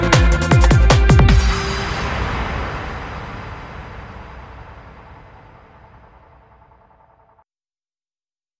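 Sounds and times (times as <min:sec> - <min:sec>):
speed metal disco music: 0:00.0 - 0:03.0.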